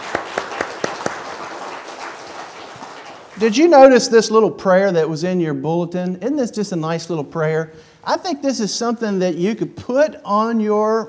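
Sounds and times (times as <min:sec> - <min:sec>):
audience applause: 0:00.0 - 0:03.7
speech: 0:03.4 - 0:11.0.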